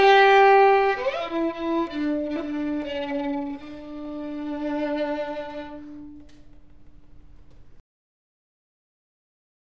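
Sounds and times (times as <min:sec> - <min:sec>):
strings playing a csardas: 0:00.0 - 0:06.6.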